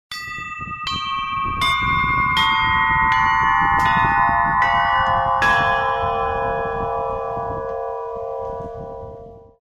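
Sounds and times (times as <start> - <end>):
bells ringing: 0.1 - 9.6.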